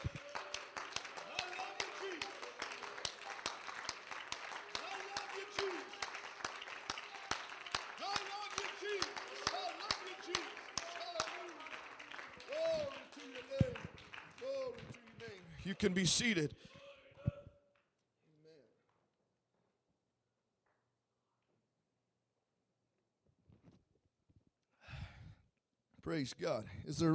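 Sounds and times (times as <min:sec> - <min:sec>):
audience applauding in praise: 0:00.0 - 0:16.5
speech: 0:15.7 - 0:16.8, 0:26.2 - 0:27.1.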